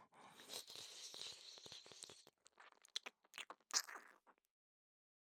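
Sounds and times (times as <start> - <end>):
ear licking: 0.4 - 4.2.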